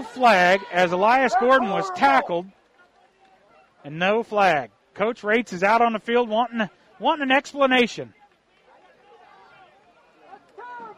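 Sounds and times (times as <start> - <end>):
stadium crowd disapproving: 0.0 - 2.5, 8.7 - 10.9
speech: 0.1 - 2.6, 3.8 - 8.2.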